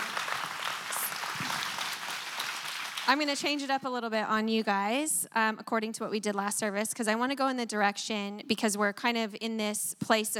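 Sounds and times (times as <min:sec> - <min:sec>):
crowd clapping: 0:00.0 - 0:03.7
speech: 0:03.1 - 0:10.3.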